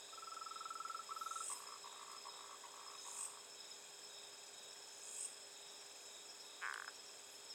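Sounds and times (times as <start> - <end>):
frog calling at night: 0.1 - 3.3, 6.6 - 6.9.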